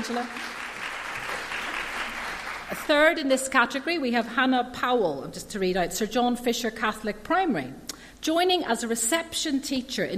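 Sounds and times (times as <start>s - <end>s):
speech: 0.0s - 0.5s, 2.7s - 10.1s
audience applause: 0.0s - 2.9s.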